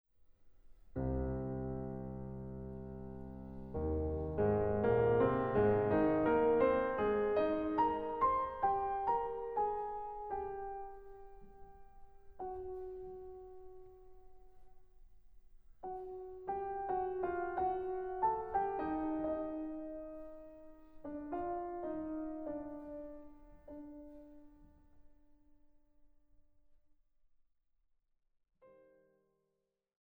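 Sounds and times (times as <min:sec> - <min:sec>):
classical ballade in G minor: 0:00.9 - 0:14.7, 0:15.8 - 0:24.8.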